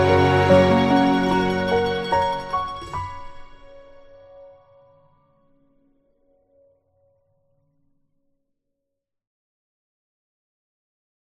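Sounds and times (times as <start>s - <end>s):
instrumental music: 0.0s - 5.0s.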